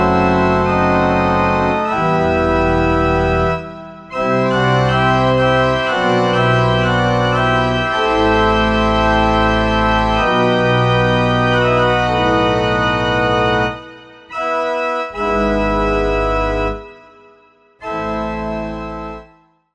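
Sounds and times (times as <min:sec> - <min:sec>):
church organ gamba stop: 0:00.0 - 0:17.2, 0:17.8 - 0:19.4.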